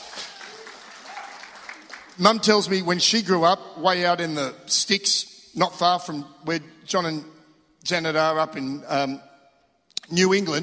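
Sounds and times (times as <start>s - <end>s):
audience clapping: 0.0s - 2.6s
speech: 2.2s - 9.3s, 10.1s - 10.6s.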